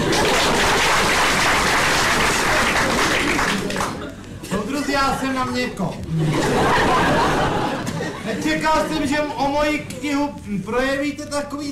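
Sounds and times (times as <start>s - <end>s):
audience applause: 0.0s - 4.1s
laughter: 0.0s - 10.3s
speech: 5.0s - 7.6s, 8.4s - 11.7s.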